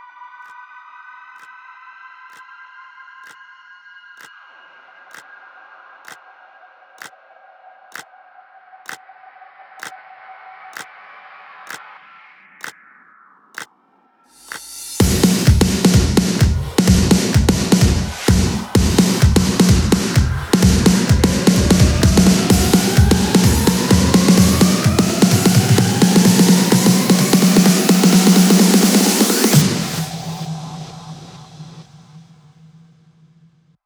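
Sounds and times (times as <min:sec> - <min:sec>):
electro house fills: 0:14.4 - 0:33.5.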